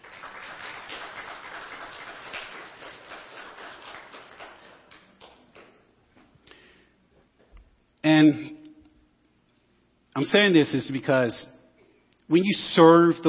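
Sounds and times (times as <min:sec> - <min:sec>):
audience clapping: 0:00.0 - 0:05.9
speech: 0:08.1 - 0:08.6, 0:10.2 - 0:11.6, 0:12.3 - 0:13.2.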